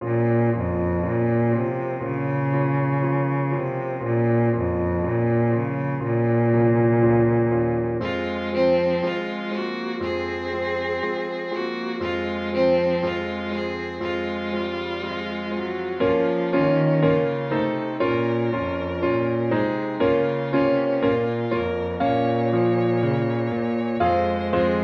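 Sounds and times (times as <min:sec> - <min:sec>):
piano trio playing an andante: 0:00.0 - 0:24.8.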